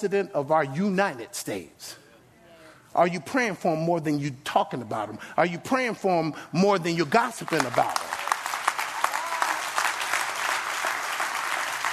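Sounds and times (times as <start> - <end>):
speech: 0.0 - 2.0, 2.9 - 8.2
audience clapping: 7.0 - 11.9.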